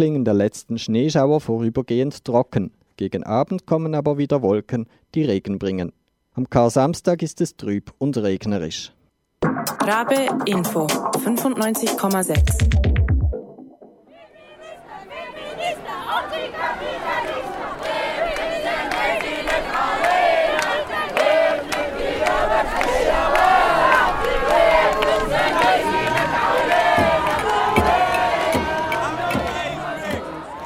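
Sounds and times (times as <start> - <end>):
speech: 0.0 - 12.9
large protest crowd chanting and shouting at demonstration: 14.1 - 30.6.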